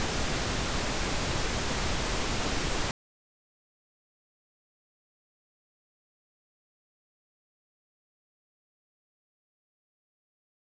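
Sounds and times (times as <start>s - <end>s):
left-channel pink noise reference tone: 0.0s - 2.9s.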